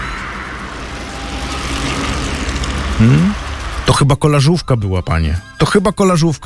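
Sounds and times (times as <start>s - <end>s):
bicycle tyres rolling on road: 0.0s - 3.9s
speech: 3.0s - 6.4s.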